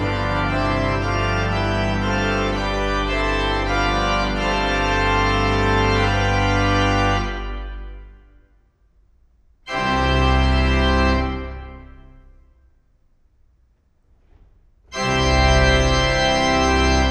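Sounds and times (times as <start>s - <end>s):
organ playing: 0.0s - 8.3s, 9.7s - 12.4s, 14.9s - 17.0s.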